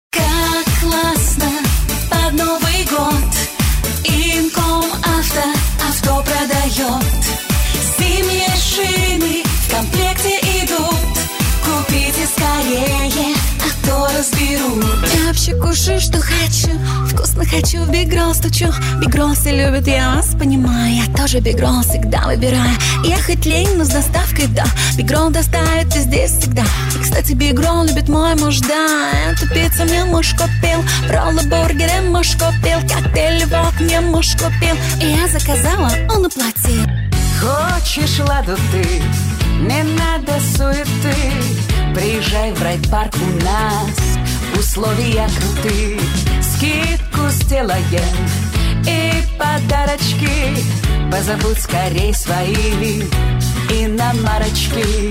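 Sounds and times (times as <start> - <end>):
vocals: 0.0 - 55.0.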